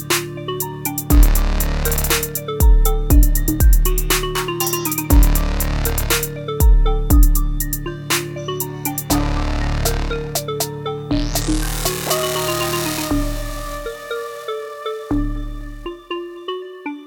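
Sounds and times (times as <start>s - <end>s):
trap beat on an Oberheim SEM synthesizer: 0.0s - 16.3s.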